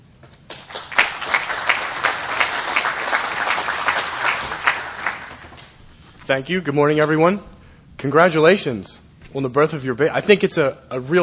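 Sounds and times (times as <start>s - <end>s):
audience applause welcoming a guest speaker: 0.5s - 5.6s
speech: 6.3s - 11.2s.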